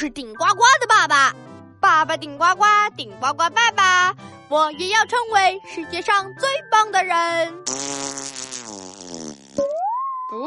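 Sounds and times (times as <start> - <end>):
speech: 0.0 - 8.3
long buzzy fart: 7.6 - 9.8.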